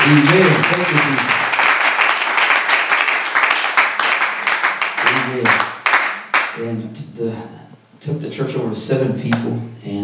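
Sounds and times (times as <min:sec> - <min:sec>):
audience applause: 0:00.0 - 0:06.6
speech: 0:00.1 - 0:01.4, 0:06.9 - 0:10.0.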